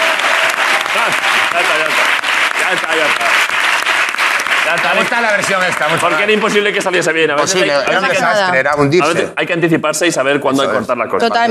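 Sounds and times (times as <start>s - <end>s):
audience applause: 0.0s - 7.3s
speech: 1.0s - 3.6s, 4.7s - 11.4s.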